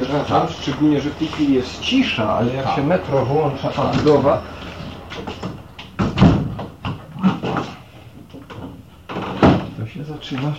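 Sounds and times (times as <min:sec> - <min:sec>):
speech: 0:00.1 - 0:05.5, 0:10.3 - 0:10.5
window being shut: 0:05.4 - 0:07.8.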